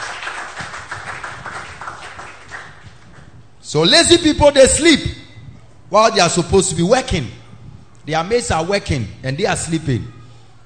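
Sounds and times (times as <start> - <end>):
crowd clapping: 0.0 - 3.3
speech: 3.7 - 5.2, 5.9 - 7.4, 8.0 - 10.2.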